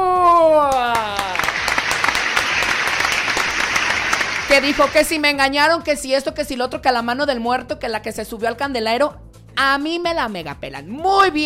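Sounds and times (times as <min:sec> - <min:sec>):
audience applause: 0:00.7 - 0:05.1
speech: 0:04.6 - 0:11.4.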